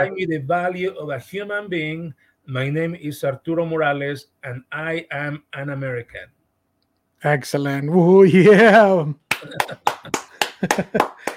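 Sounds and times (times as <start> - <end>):
speech: 0.0 - 6.4, 7.2 - 11.2
laughter: 8.4 - 11.3
hand clapping: 9.3 - 11.3.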